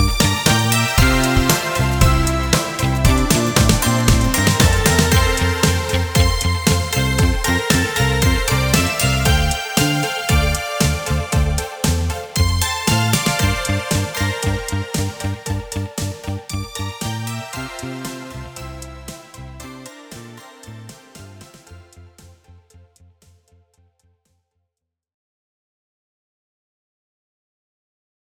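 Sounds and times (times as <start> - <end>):
karaoke singing: 0.0 - 15.8.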